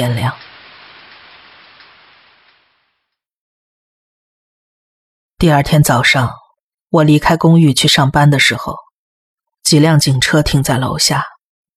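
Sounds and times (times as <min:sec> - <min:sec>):
speech: 0:00.0 - 0:00.5, 0:05.4 - 0:08.8, 0:09.6 - 0:11.3
storm rain: 0:00.0 - 0:03.1.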